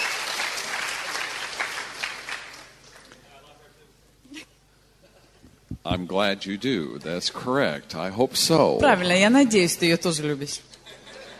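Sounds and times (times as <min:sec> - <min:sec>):
audience applause: 0:00.0 - 0:03.1
speech: 0:05.8 - 0:10.7.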